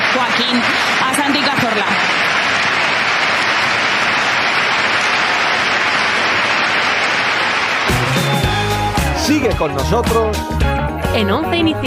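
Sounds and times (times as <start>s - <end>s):
stadium crowd ovation of roaring applause and cheering: 0.0s - 10.7s
speech: 0.2s - 1.9s, 9.3s - 11.8s.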